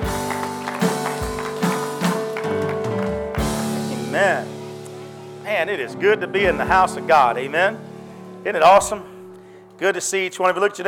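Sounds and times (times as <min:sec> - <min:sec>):
audience hand clapping: 0:00.0 - 0:05.0
sustained keyboard chords: 0:00.0 - 0:10.8
speech: 0:05.6 - 0:09.1, 0:09.8 - 0:10.8.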